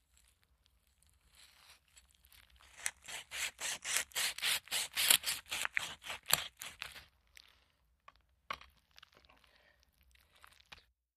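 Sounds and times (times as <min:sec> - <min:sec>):
meat being cut and ripped from bones: 0:02.4 - 0:07.1.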